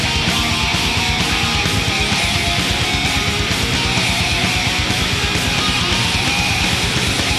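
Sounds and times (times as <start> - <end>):
big win music loop: 0.0 - 7.3.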